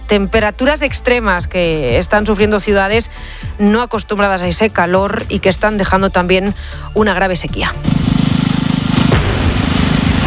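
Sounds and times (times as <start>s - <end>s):
speech: 0.1s - 8.0s
controlled explosion redirecting river water to the Danube in Romania: 9.0s - 10.2s.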